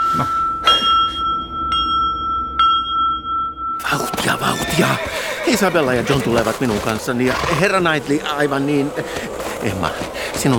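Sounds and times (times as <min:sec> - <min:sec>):
small handbell ringing to call servant: 0:00.0 - 0:03.8
speech: 0:00.2 - 0:00.4, 0:04.8 - 0:10.5.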